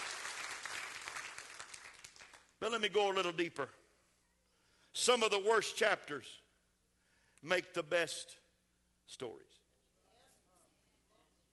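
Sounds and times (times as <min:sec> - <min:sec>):
audience clapping hands: 0:00.0 - 0:02.6
speech: 0:02.6 - 0:03.8, 0:05.0 - 0:06.4, 0:07.4 - 0:08.4, 0:09.1 - 0:09.6.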